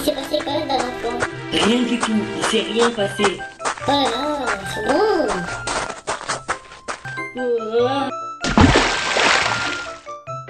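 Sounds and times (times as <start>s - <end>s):
speech: 0.0s - 5.7s, 7.4s - 8.1s
water splashing in a video game featuring Link: 8.4s - 10.0s.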